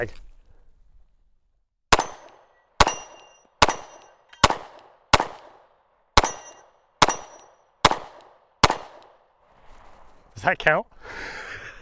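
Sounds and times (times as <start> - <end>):
speech: 0.0 - 0.2, 10.4 - 11.4
gunshots at steel plate targets: 1.9 - 5.6, 6.2 - 9.1.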